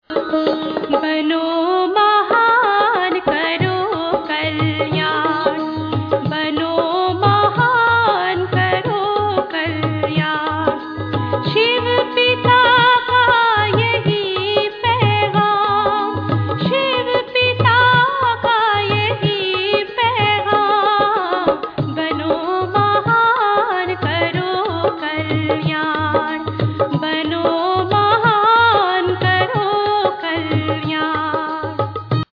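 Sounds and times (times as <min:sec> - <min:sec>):
devotional music: 0:00.1 - 0:32.3.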